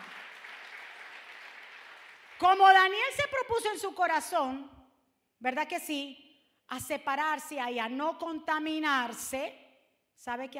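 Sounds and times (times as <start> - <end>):
audience applauding loudly: 0.0 - 2.4
speech: 2.4 - 4.8, 5.4 - 9.6, 10.2 - 10.5.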